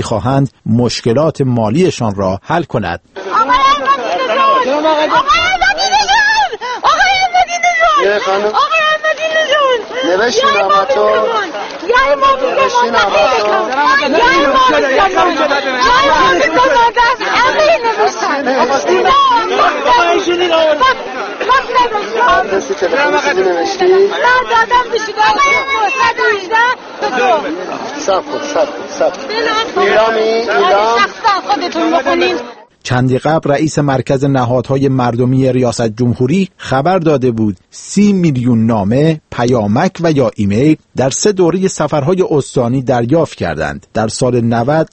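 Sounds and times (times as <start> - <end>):
speech: 0.0 - 3.6, 4.6 - 6.1, 8.0 - 8.9, 10.0 - 44.9
crowd of people shouting a name: 3.2 - 32.6.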